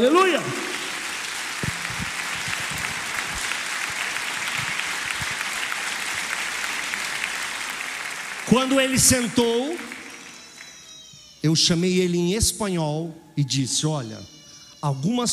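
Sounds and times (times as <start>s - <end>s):
speech: 0.0s - 0.7s, 8.5s - 9.9s, 11.4s - 15.3s
audience applause: 0.0s - 11.0s.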